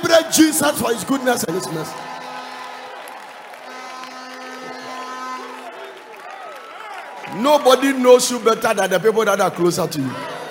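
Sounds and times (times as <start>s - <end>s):
crowd shouting and whooping: 0.0s - 8.0s, 9.7s - 10.4s
audience clapping: 0.0s - 9.7s
speech: 0.2s - 2.2s, 7.3s - 10.4s
sustained tones: 1.5s - 5.8s.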